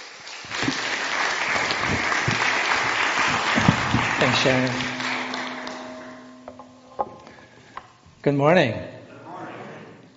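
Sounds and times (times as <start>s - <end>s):
audience applause welcoming a speaker onto the stage: 0.0s - 5.5s
speech: 4.2s - 5.0s, 8.2s - 8.9s.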